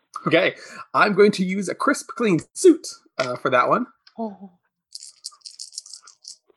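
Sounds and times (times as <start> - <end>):
speech: 0.2 - 5.0
dice rattling and clattering: 4.9 - 6.5.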